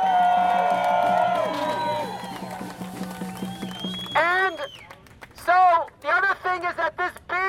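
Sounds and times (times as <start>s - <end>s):
crowd cheering for tenants: 0.0s - 4.7s
scattered claps: 0.5s - 7.3s.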